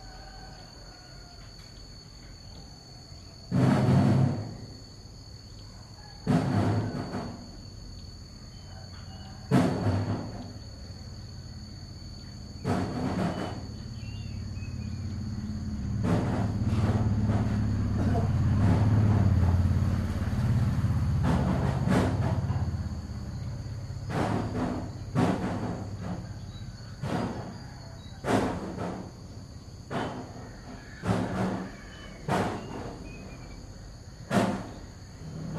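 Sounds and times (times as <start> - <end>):
morning ambience in Vietnam: 0.0 - 35.5.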